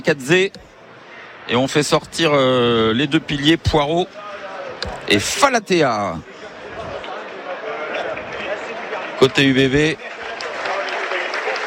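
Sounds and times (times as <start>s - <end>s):
speech: 0.0s - 0.6s, 1.5s - 4.2s, 4.8s - 6.3s, 9.2s - 10.2s
stadium crowd applauding: 7.1s - 11.6s.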